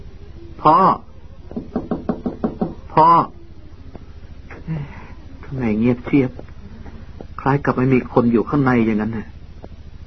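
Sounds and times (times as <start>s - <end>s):
speech: 0.6s - 1.8s, 3.0s - 3.4s, 5.5s - 6.5s, 7.4s - 9.3s
knocking on a door: 1.5s - 2.9s.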